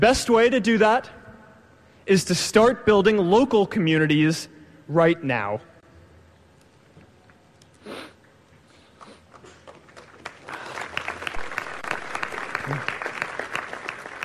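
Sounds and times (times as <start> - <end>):
speech: 0.0 - 1.2, 2.1 - 5.7
nervous audience applause: 9.3 - 14.2.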